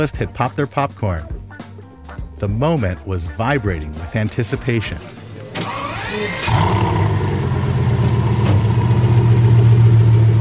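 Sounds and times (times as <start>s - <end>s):
speech: 0.0s - 1.4s, 2.4s - 5.2s, 6.1s - 7.2s
black and red Bugatti Veyron coupe roaring past: 5.1s - 10.3s.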